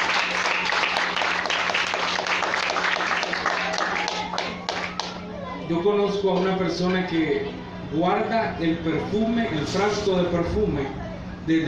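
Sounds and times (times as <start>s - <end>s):
audience applause: 0.0s - 5.2s
speech: 5.7s - 11.6s.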